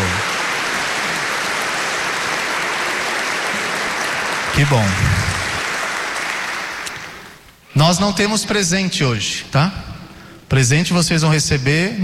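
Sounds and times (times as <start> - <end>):
crowd applause: 0.0 - 7.5
speech: 4.6 - 5.3, 7.8 - 9.9, 10.5 - 12.0.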